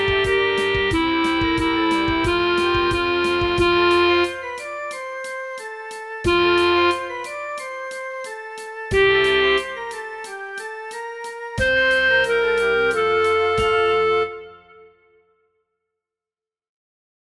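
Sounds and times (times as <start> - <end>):
flute for practice tracks: 0.0 - 15.3.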